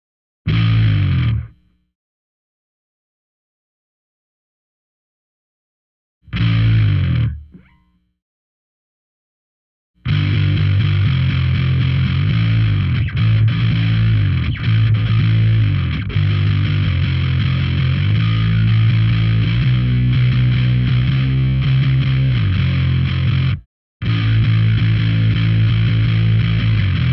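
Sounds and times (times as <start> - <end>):
bass: 0.5 - 1.8, 6.2 - 8.1, 10.0 - 27.1.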